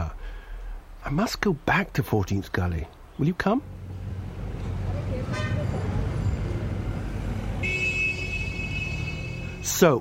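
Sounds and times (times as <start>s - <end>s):
traffic rumbling at the corner of Balasis Road and Suklaji Street: 0.0s - 9.9s
speech: 1.1s - 3.8s, 9.7s - 9.9s
car horns honking: 5.2s - 6.6s, 7.4s - 9.9s.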